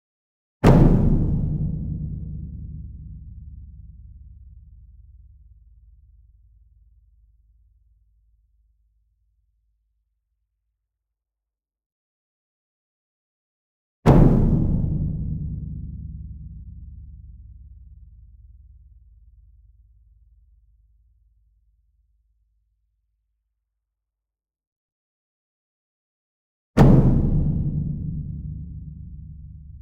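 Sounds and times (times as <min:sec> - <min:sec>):
large concert bass drum medium hit: 0:00.6 - 0:04.7, 0:14.1 - 0:17.6, 0:26.8 - 0:29.8.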